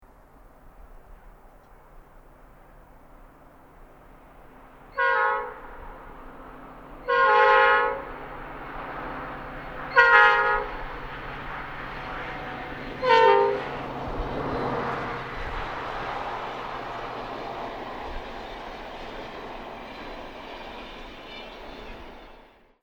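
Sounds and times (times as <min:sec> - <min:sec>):
horns: 0:04.9 - 0:05.8, 0:07.0 - 0:08.1, 0:09.9 - 0:10.8, 0:12.0 - 0:13.8.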